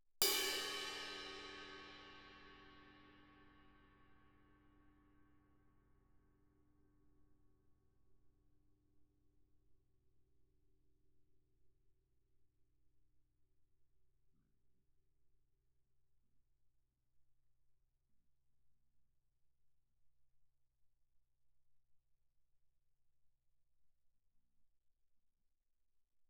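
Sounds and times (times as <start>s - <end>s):
suspended cymbal crash played with stick: 0.2s - 3.0s.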